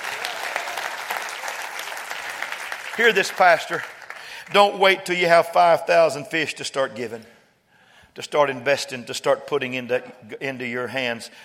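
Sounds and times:
audience clapping: 0.0 - 4.8
speech: 3.0 - 7.4, 8.2 - 11.4.

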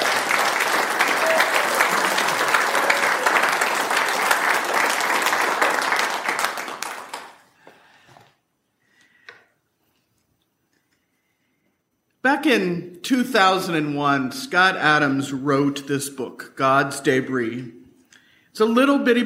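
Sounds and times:
audience applause: 0.0 - 7.6
speech: 12.4 - 17.8, 18.6 - 19.2.

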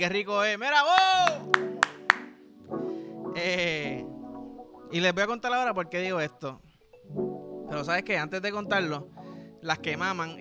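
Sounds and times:
speech: 0.0 - 1.6, 3.4 - 4.1, 4.9 - 10.3
audience applause: 1.0 - 2.3
sharp claps: 1.0 - 2.4.

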